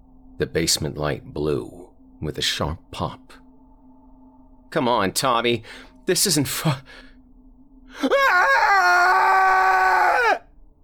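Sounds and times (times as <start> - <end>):
speech: 0.4 - 3.4, 4.7 - 7.1, 7.9 - 9.0
blood-curdling scream from a frightened voice: 8.0 - 10.6.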